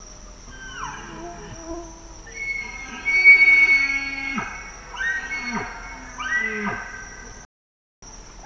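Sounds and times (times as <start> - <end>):
male Bactrian deer calling and roaring: 0.5 - 7.2.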